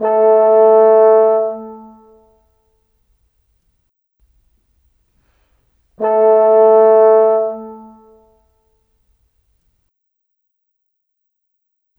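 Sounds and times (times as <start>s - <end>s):
cinematic horn: 0.0s - 2.2s, 6.0s - 8.4s.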